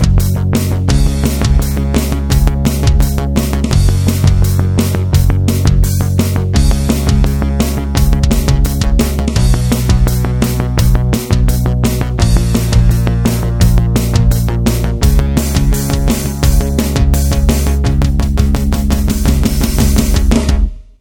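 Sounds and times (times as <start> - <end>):
analog synth blast: 0.0 - 20.8.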